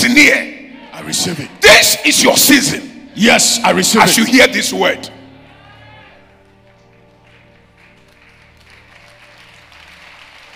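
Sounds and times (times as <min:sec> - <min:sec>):
speech: 0:00.2 - 0:05.2
audience clapping: 0:06.2 - 0:10.5.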